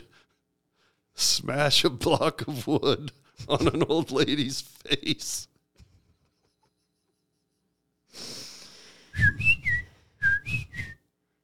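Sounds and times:
speech: 1.3s - 5.5s
person whistling bird calls: 9.2s - 11.0s.

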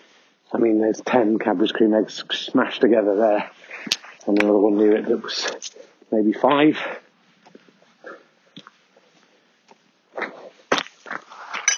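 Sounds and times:
speech: 0.5s - 7.0s
trowel flicking stones off the ground: 10.2s - 11.7s.

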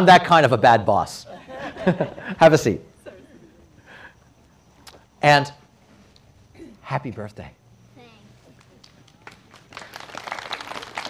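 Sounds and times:
speech: 0.0s - 2.9s, 5.2s - 5.6s, 6.9s - 7.6s
laughter: 1.1s - 4.1s
audience applause: 8.5s - 11.0s.

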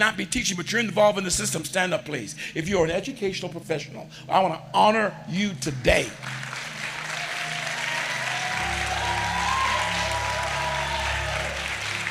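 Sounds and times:
speech: 0.0s - 6.4s
audience applause: 6.2s - 12.0s
audience cheering: 6.9s - 12.0s.

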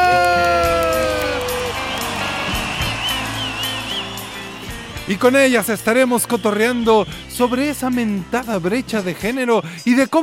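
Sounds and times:
audience applause and cheering: 0.0s - 7.5s
speech: 5.1s - 10.2s.

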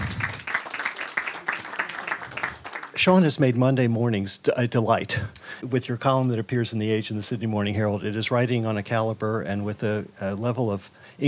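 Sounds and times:
audience applause: 0.0s - 3.1s
speech: 3.0s - 11.2s.

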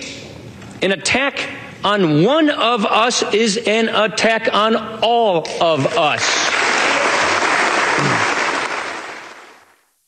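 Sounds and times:
speech: 0.8s - 6.4s
standing ovation applause: 6.0s - 9.7s
cheers: 6.5s - 8.9s.

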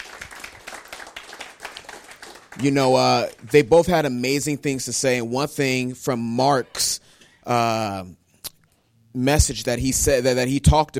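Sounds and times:
round of applause: 0.0s - 3.9s
speech: 2.6s - 8.2s, 9.2s - 10.9s.

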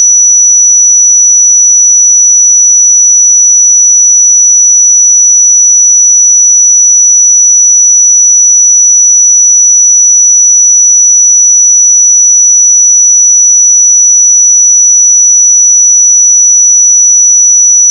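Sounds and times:
5905 Hz pure sine tone: 0.0s - 17.9s.

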